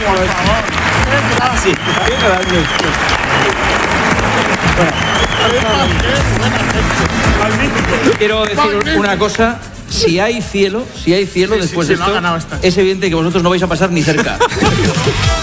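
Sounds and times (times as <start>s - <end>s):
audience applause: 0.0s - 9.4s
speech: 0.1s - 4.1s, 4.8s - 15.4s
laughter: 14.0s - 15.4s.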